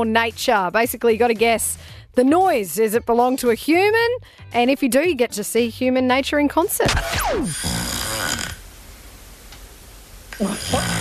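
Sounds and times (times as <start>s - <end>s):
speech: 0.0s - 8.0s, 10.4s - 10.9s
sleeping woman snoring loudly: 7.3s - 8.6s, 10.4s - 10.9s.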